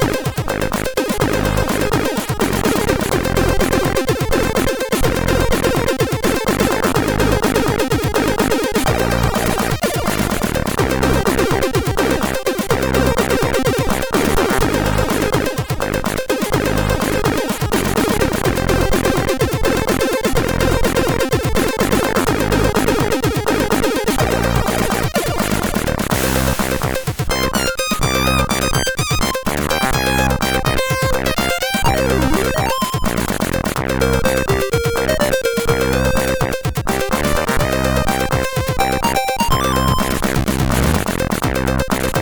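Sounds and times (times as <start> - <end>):
trance music on a CSG8580R5 SID chip: 0.0 - 42.1.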